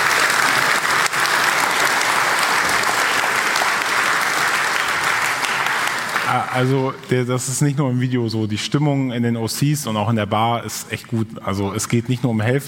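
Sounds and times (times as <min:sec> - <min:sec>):
audience applause: 0:00.0 - 0:07.0
speech: 0:06.3 - 0:12.6.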